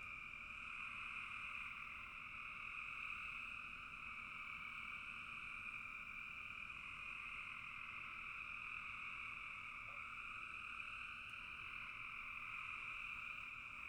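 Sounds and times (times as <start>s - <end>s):
post-dusk frogs croaking in a bog: 0.1s - 13.8s.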